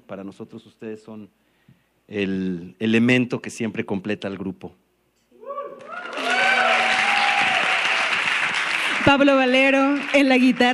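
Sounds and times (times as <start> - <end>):
speech: 0.1 - 1.5, 2.1 - 4.8, 9.0 - 10.7
audience applause: 5.8 - 10.7.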